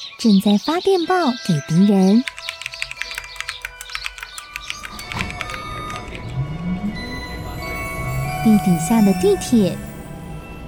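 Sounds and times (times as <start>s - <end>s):
sparrows chirping outside the window: 0.0s - 6.4s, 8.3s - 10.0s
speech: 0.2s - 2.3s, 8.5s - 9.9s.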